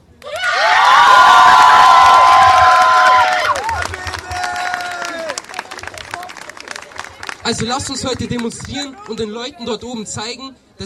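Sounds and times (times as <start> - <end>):
crowd cheering and whooping: 0.3 - 5.9
scattered clapping: 2.0 - 9.3
speech: 7.5 - 10.8.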